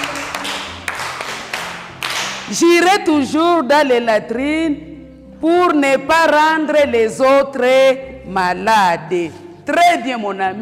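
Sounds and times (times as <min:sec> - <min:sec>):
class clapping on cue: 0:00.0 - 0:02.5
speech: 0:02.5 - 0:10.6.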